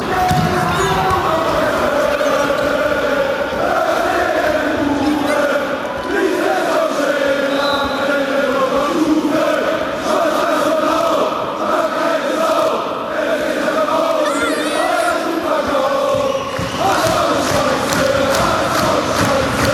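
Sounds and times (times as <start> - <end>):
football fans chanting: 0.0 - 19.7.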